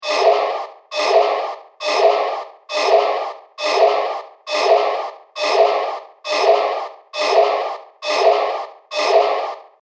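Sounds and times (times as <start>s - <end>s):
industrial sci-fi machine music loop: 0.0s - 9.7s.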